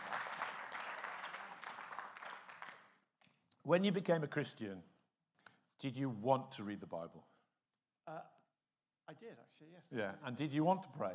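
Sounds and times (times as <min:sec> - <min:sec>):
audience clapping: 0:00.0 - 0:03.0
speech: 0:03.6 - 0:04.9, 0:05.8 - 0:07.3, 0:08.1 - 0:08.4, 0:09.1 - 0:11.1.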